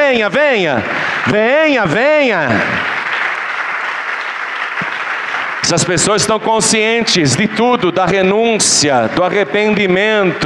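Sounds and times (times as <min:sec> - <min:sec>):
church congregation applauding: 0:00.0 - 0:07.8
speech: 0:00.1 - 0:02.9, 0:05.6 - 0:10.4.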